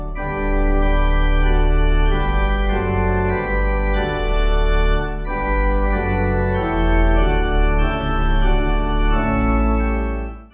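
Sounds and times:
pipe melody: 0.0 - 10.5.

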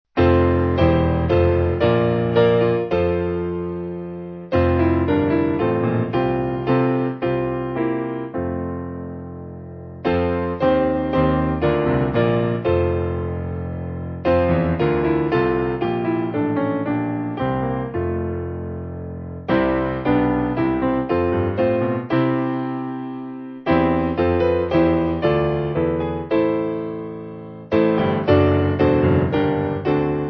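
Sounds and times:
piano backing music for churches: 0.2 - 30.2.

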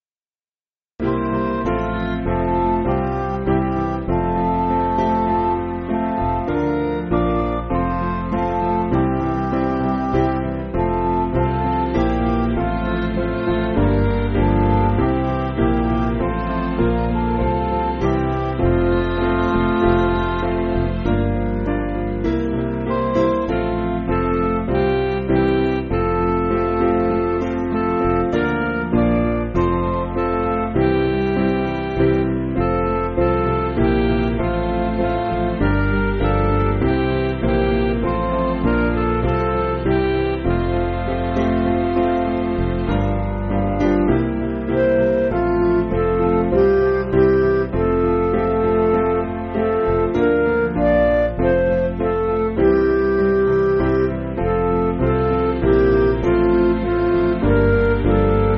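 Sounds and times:
MIDI church backing music: 1.0 - 58.5.

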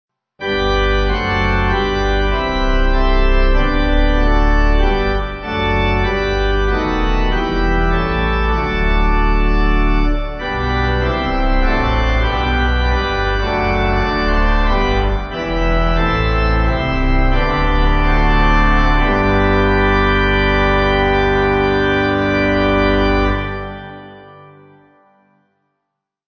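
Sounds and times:
pipe organ: 0.4 - 25.2.

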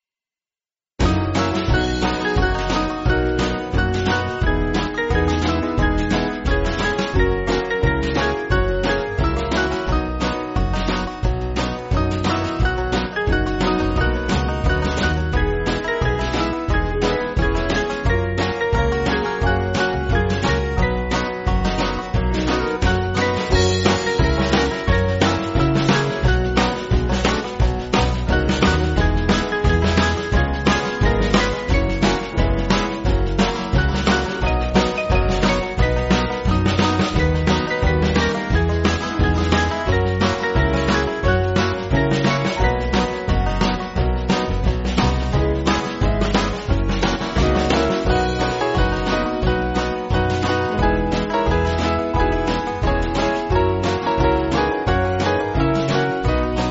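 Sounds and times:
band backing track for churches: 1.0 - 56.6.

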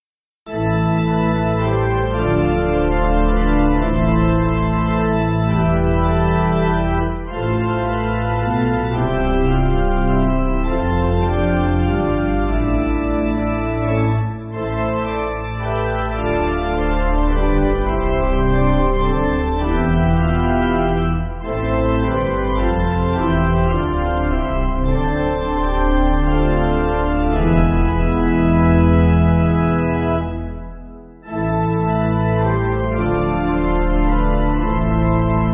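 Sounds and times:
pipe organ backing for churches: 0.5 - 35.5.

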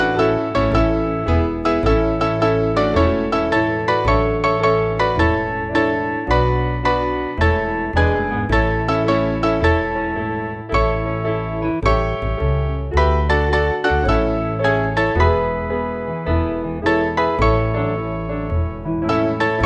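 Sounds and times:
American melody on piano: 0.0 - 19.6.

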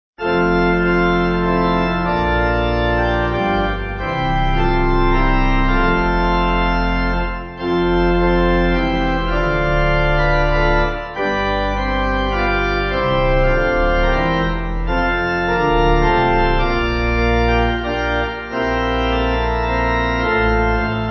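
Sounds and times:
church pipe organ backing music: 0.2 - 21.0.

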